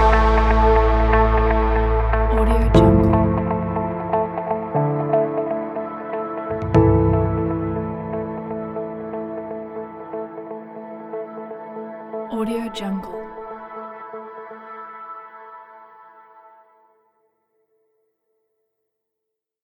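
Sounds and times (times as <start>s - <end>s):
dramatic tension suspense music: 0.0s - 11.2s.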